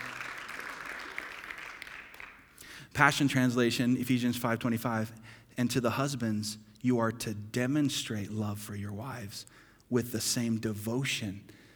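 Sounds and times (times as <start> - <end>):
audience applause: 0.0 - 2.5
speech: 2.9 - 11.6.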